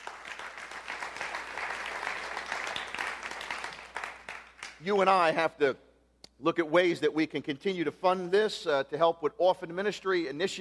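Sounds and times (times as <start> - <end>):
audience applause: 0.0 - 4.8
speech: 4.8 - 5.8, 6.4 - 10.5.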